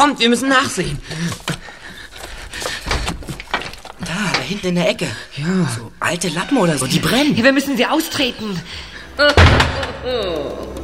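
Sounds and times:
speech: 0:00.0 - 0:01.6, 0:04.5 - 0:10.8
heavy door slamming shut: 0:09.3 - 0:10.0.

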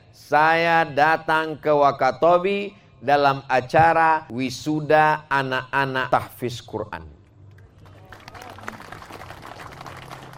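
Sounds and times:
speech: 0:00.2 - 0:07.2
crowd applauding: 0:07.6 - 0:10.3.

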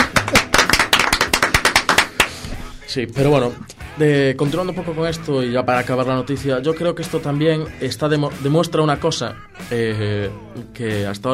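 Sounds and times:
hand claps from podcast hosts: 0:00.0 - 0:02.5
speech: 0:02.9 - 0:11.3.

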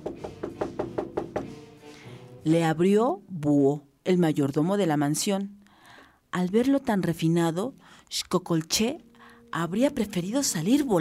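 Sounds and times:
knocking on a door: 0:00.0 - 0:01.6
speech: 0:02.4 - 0:05.6, 0:06.3 - 0:10.9.

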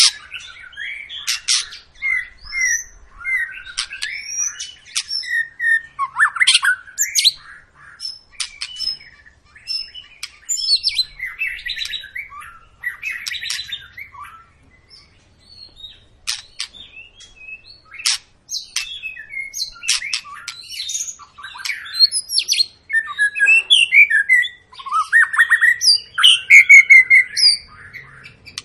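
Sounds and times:
white-rumped shama singing varied whistles and squawks: 0:00.0 - 0:28.6.

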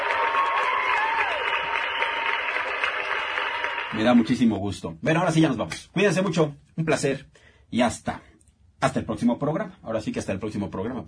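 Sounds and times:
applause: 0:00.0 - 0:04.6
speech: 0:03.9 - 0:11.0.

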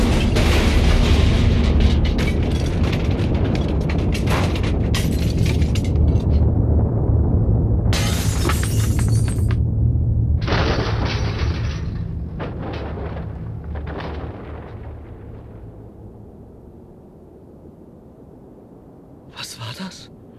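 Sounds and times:
metal debris of car engine crashing and clattering: 0:00.0 - 0:06.4, 0:08.0 - 0:09.6, 0:10.4 - 0:15.2
car engine blowing up: 0:00.0 - 0:15.6.

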